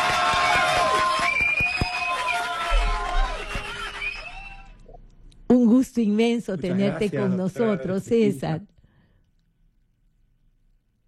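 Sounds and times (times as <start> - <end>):
audience applause of welcome: 0.0 - 4.8
cheering: 0.0 - 4.9
speech: 6.0 - 8.7.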